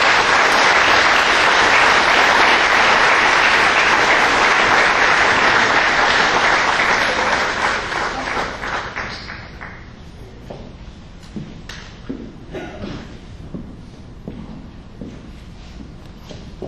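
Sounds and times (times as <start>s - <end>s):
audience applause: 0.0s - 9.9s.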